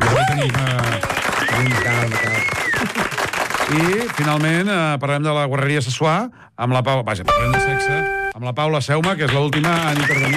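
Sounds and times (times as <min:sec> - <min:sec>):
audience applause: 0:00.0 - 0:04.6, 0:09.1 - 0:10.3
speech: 0:00.4 - 0:03.0, 0:03.7 - 0:10.3.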